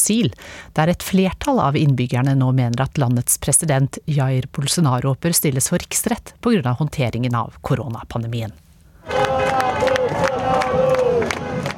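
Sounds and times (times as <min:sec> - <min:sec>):
speech: 0:00.0 - 0:09.2
demonstrators shouting in Sao Paulo: 0:09.1 - 0:11.7.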